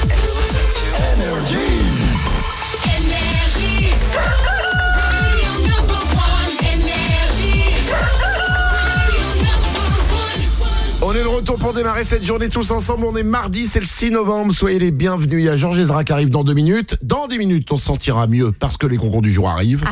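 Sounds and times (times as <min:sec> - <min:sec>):
loud dense music with a steady punchy beat: 0:00.0 - 0:12.3
rooster crowing: 0:04.2 - 0:05.4, 0:07.9 - 0:09.2
speech: 0:11.6 - 0:19.9.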